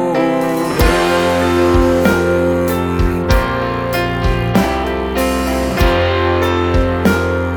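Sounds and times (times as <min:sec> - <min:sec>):
church bells playing a hymn: 0:00.2 - 0:07.4.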